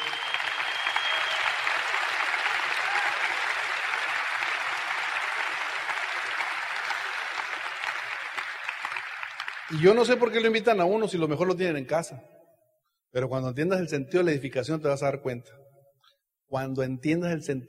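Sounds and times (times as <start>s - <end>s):
audience applause: 0.0s - 10.3s
speech: 9.8s - 12.4s, 13.1s - 15.6s, 16.5s - 17.6s.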